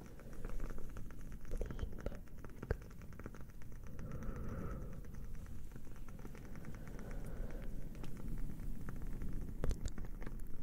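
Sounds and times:
fire crackling: 0.0 - 10.6.

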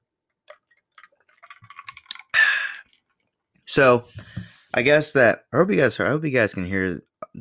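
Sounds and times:
ice cubes jingling in a glass: 1.0 - 2.4
speech: 3.7 - 7.3.

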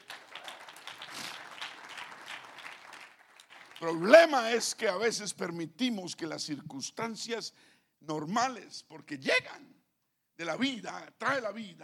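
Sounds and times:
audience applauding: 0.0 - 4.4
speech: 3.8 - 9.8, 10.4 - 11.8.

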